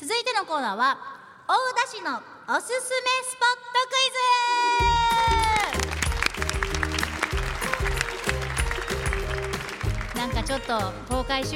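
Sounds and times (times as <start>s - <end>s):
speech: 0.4s - 5.4s, 10.2s - 11.5s
students applauding at a live recording: 5.1s - 11.0s.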